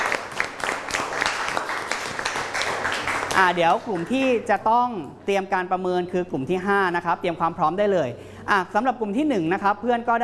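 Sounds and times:
audience applause: 0.0 - 4.2
speech: 3.4 - 10.2.

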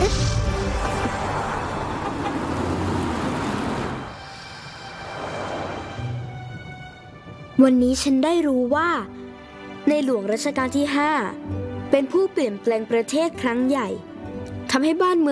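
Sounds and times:
car approaching and crashing: 0.2 - 6.3
speech: 7.6 - 9.2, 9.9 - 14.1, 14.7 - 15.3.

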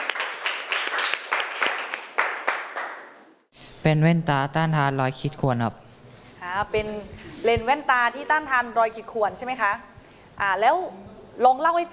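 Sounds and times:
classroom applause: 0.0 - 3.2
speech: 3.8 - 5.8, 6.6 - 11.9.

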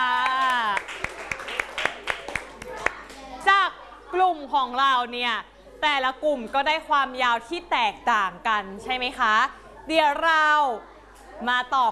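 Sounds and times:
children clapping: 0.0 - 3.3
speech: 4.2 - 11.9.

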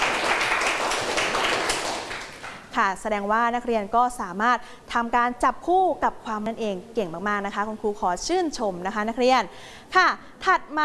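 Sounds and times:
students in a classroom clapping for themselves after a lesson activity: 0.0 - 2.7
speech: 2.8 - 10.8.

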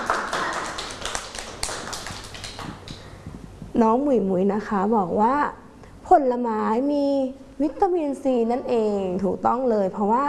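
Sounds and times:
children clapping: 0.0 - 3.1
speech: 3.8 - 10.2.

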